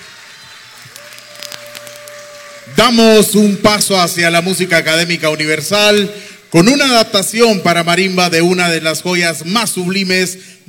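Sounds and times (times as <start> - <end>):
audience applauding at a music performance: 0.0 - 2.8
speech: 2.6 - 10.6.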